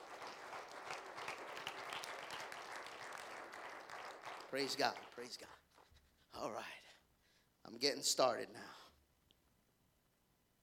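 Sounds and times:
audience clapping hands: 0.0s - 6.0s
speech: 4.5s - 5.6s, 6.3s - 6.8s, 7.6s - 8.8s.

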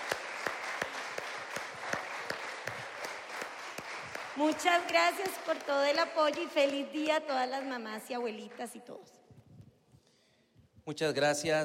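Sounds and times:
audience applause: 0.0s - 8.6s
speech: 4.4s - 9.2s, 10.9s - 11.6s.

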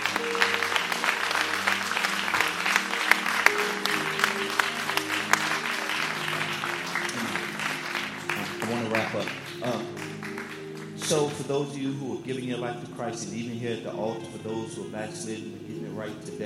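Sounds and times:
audience clapping hands: 0.0s - 11.6s
speech: 11.1s - 16.4s.

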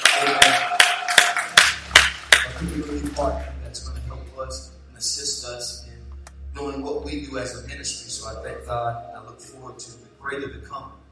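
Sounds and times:
audience clapping hands: 0.0s - 3.7s
speech: 2.6s - 6.0s, 6.6s - 11.0s.

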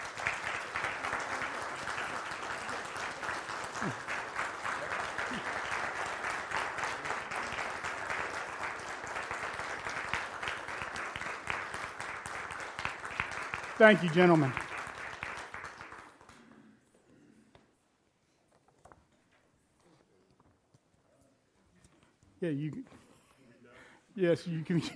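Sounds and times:
audience applause: 0.0s - 16.4s
speech: 3.8s - 4.1s, 13.8s - 14.7s, 22.5s - 23.0s, 24.2s - 24.9s.

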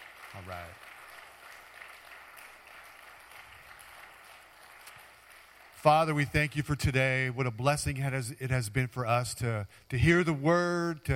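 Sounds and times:
audience applause: 0.0s - 6.1s
speech: 0.4s - 0.9s, 5.8s - 11.1s.

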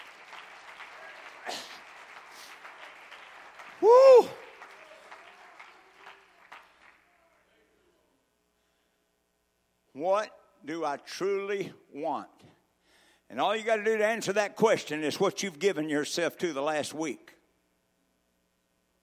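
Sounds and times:
audience clapping hands: 0.0s - 7.6s
speech: 10.9s - 12.6s, 13.3s - 17.4s.

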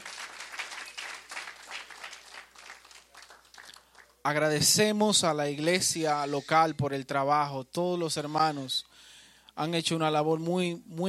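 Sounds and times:
audience applause: 0.0s - 4.2s
speech: 4.2s - 8.9s, 9.6s - 11.0s.

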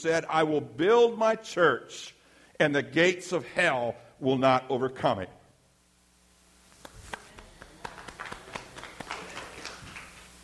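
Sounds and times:
speech: 0.0s - 5.4s
sparse clapping from a group: 6.8s - 10.3s.

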